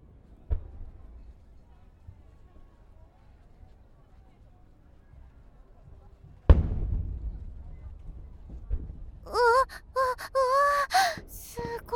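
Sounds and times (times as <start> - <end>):
firework exploding with a loud boom: 6.5 - 7.5
woman exclaiming: 9.3 - 11.9.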